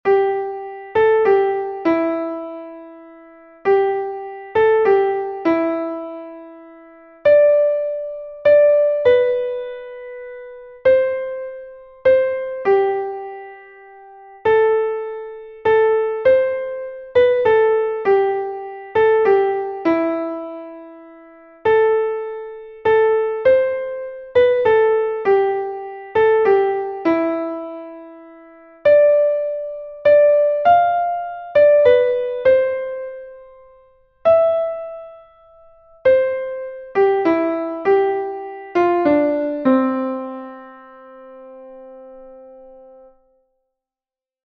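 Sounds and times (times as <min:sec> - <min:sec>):
piano: 0:00.0 - 0:43.5.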